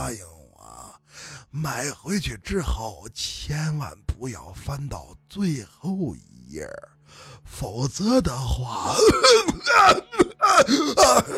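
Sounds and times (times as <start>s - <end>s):
speech: 0.0s - 0.4s, 1.5s - 11.3s
violent coughing of an old man: 8.8s - 11.3s.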